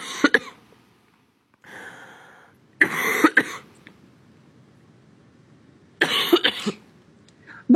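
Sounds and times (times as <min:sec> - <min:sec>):
person coughing: 0:00.0 - 0:00.6, 0:02.8 - 0:03.7, 0:06.0 - 0:06.8.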